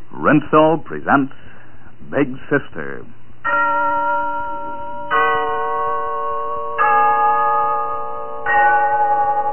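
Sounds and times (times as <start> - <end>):
speech: 0.2 - 1.4, 2.1 - 3.7
Glen Falls Town Hall clock bell chiming: 3.4 - 9.5.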